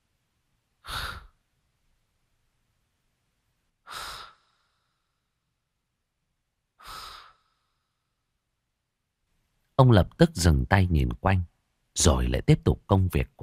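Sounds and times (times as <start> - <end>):
heavy wheezing breaths in a dark, damp garage: 0.8 - 1.4, 3.8 - 5.4, 6.8 - 8.3
speech: 9.8 - 13.4.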